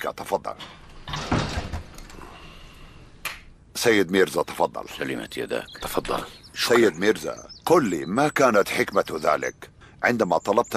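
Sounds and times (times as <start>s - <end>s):
speech: 0.0s - 1.4s, 3.8s - 10.7s
door closing with dull thud: 1.0s - 2.1s.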